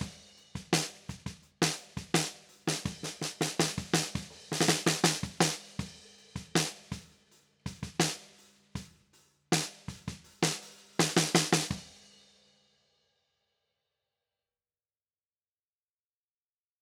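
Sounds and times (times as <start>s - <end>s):
13x6 inch maple snare drum with low tuning: 0.8s - 5.7s, 7.9s - 8.3s, 9.6s - 11.8s.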